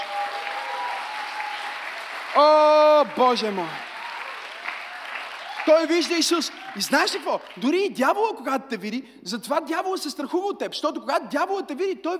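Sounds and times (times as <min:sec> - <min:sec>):
audience clapping: 0:00.0 - 0:08.0
speech: 0:02.4 - 0:03.8, 0:05.6 - 0:12.1.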